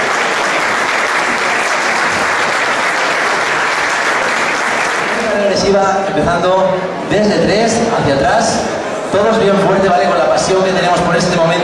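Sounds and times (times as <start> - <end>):
crowd clapping: 0.0 - 5.8
speech: 5.7 - 11.6.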